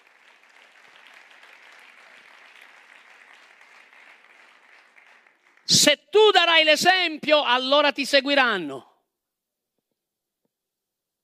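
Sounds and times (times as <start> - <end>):
audience applause: 0.0 - 5.7
speech: 5.8 - 8.9.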